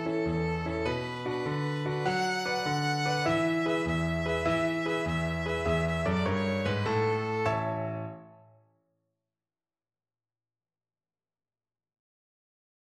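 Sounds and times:
violin: 0.0 - 8.4.

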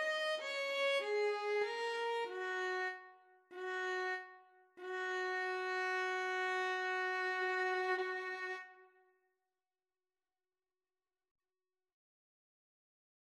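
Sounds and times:
violin and cello duet: 0.0 - 2.9, 4.8 - 8.6.

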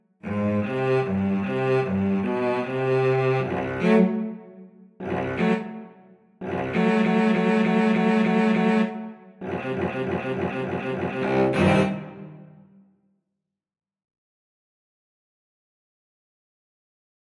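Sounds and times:
cello duet: 0.2 - 12.5.

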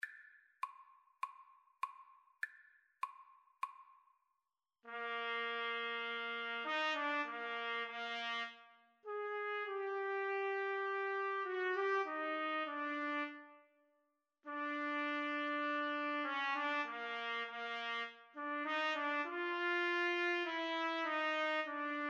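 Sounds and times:
trumpet duet: 4.9 - 13.8, 14.5 - 22.0.

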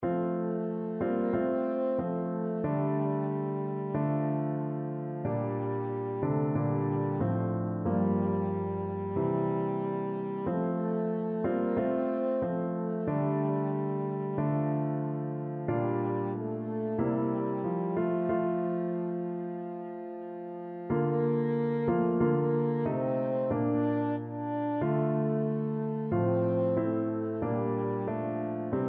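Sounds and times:
French horn: 0.0 - 28.8.

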